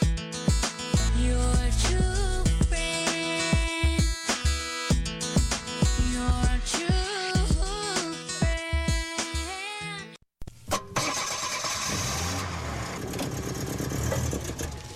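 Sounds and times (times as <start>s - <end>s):
music: 0.0s - 10.2s
old clunker car engine cranking and running: 10.7s - 14.9s.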